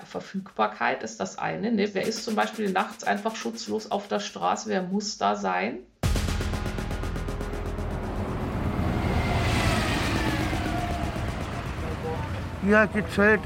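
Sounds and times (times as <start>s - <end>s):
speech: 0.1s - 5.9s, 12.7s - 13.4s
vehicle passing whoosh: 6.9s - 13.4s
street traffic rumble: 7.6s - 13.4s.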